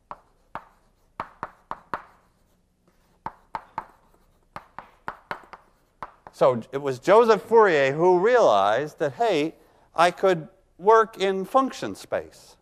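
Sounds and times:
name written on a board during a mathematics lecture: 0:00.0 - 0:06.4
speech: 0:06.4 - 0:12.6.

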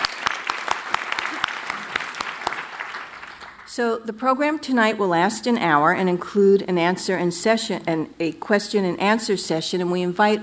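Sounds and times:
audience clapping for trustees and Chairman's Council members: 0:00.0 - 0:03.7
speech: 0:03.8 - 0:10.4.

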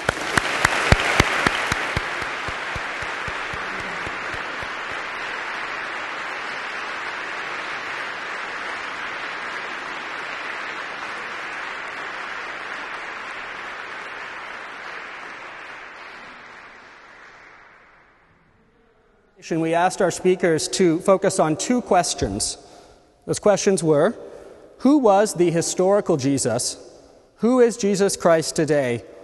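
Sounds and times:
audience applause welcoming guest speakers at an evening talk on Christianity: 0:00.0 - 0:18.2
speech: 0:19.5 - 0:29.1.

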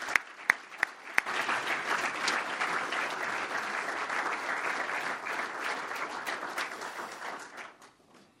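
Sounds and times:
audience clapping welcoming a lecture speaker: 0:00.0 - 0:08.0.

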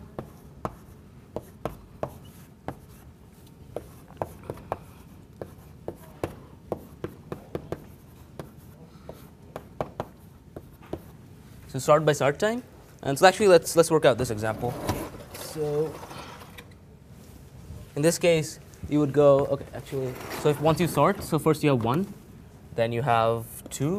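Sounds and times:
low hum: 0:00.0 - 0:23.9
writing ticks and taps: 0:00.2 - 0:11.1
speech: 0:11.8 - 0:15.0, 0:15.6 - 0:16.1, 0:18.0 - 0:22.2, 0:22.8 - 0:23.9.

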